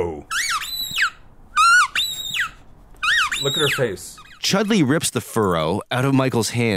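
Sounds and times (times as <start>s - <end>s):
squeaky plush dog toy squeaking: 0.3s - 4.5s
speech: 3.4s - 6.7s.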